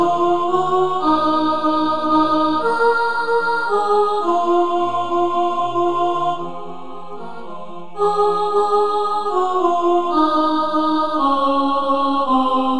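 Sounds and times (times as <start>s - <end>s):
choir second soprano part singing: 0.0s - 12.7s.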